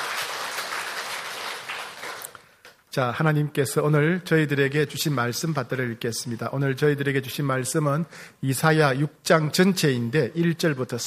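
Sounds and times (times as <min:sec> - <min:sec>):
audience applauding: 0:00.0 - 0:02.5
speech: 0:02.9 - 0:11.0.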